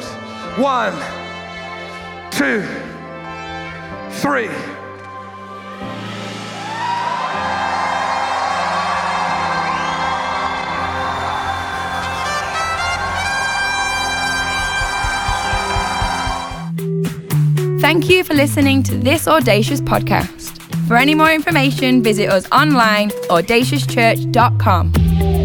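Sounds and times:
music: 0:00.0 - 0:25.4
speech: 0:00.6 - 0:01.2, 0:02.4 - 0:02.9, 0:04.2 - 0:04.8, 0:17.8 - 0:25.3
church congregation cheering, whooping and shouting in praise: 0:05.9 - 0:16.7.

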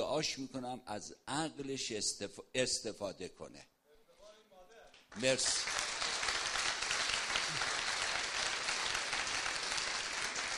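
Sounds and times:
speech: 0:00.1 - 0:03.7, 0:05.1 - 0:05.7
audience applause at a Persian-language gathering: 0:05.1 - 0:10.5.

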